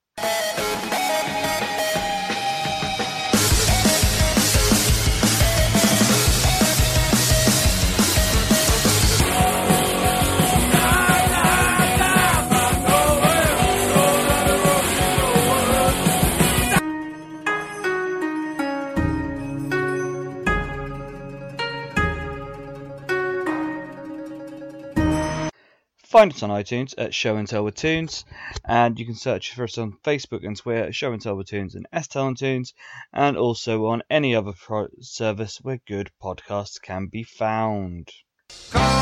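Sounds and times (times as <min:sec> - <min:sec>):
punk music snippet: 0:00.2 - 0:17.0, 0:38.5 - 0:39.0
metal music snippet: 0:00.2 - 0:25.5, 0:38.5 - 0:39.0
folk music snippet: 0:03.4 - 0:25.5, 0:38.7 - 0:39.0
speech: 0:26.2 - 0:39.0.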